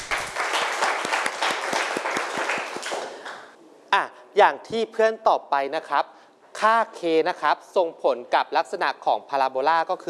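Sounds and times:
classroom applause for a student: 0.0s - 3.6s
speech: 4.4s - 10.0s.

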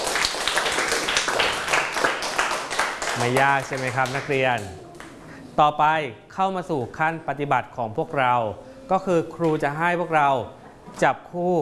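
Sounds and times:
students clapping for themselves: 0.0s - 5.2s
speech: 3.2s - 4.8s, 5.6s - 11.6s.

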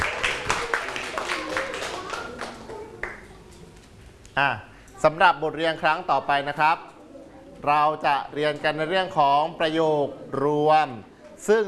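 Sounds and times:
classroom applause: 0.0s - 3.5s
speech: 4.4s - 6.9s, 7.6s - 11.6s.

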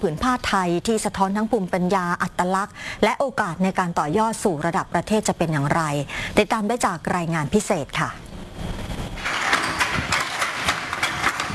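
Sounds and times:
speech: 0.0s - 8.2s
wooden hand loom beating threads while weaving patterned cloth in Songkhla: 9.2s - 11.5s.

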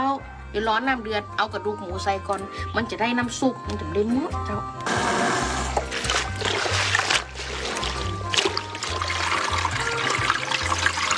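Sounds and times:
speech: 0.2s - 5.1s
tap water running while rinsing vegetables: 4.8s - 11.1s.

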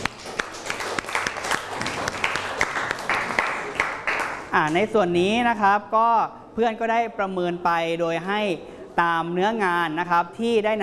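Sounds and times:
classroom applause: 0.0s - 4.5s
speech: 4.6s - 10.8s.

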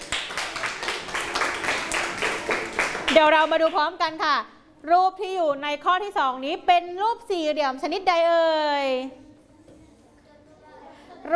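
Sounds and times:
class of children applauding for a student: 0.0s - 3.2s
speech: 3.1s - 9.2s.

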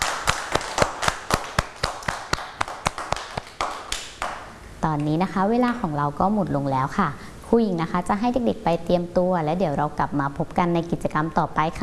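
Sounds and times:
children clapping for themselves: 0.0s - 4.5s
speech: 4.8s - 11.8s.

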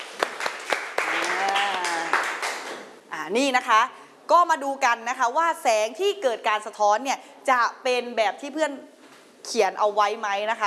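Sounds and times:
applause for a classmate: 0.0s - 2.9s
speech: 3.3s - 10.6s.

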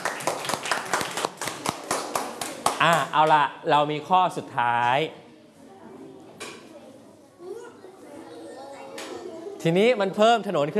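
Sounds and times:
people clapping: 0.0s - 3.4s
speech: 2.8s - 5.2s, 9.6s - 10.7s.

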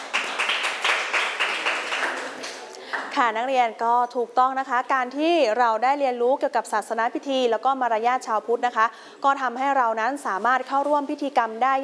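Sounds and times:
group of students clapping: 0.0s - 3.2s
speech: 3.2s - 11.8s.

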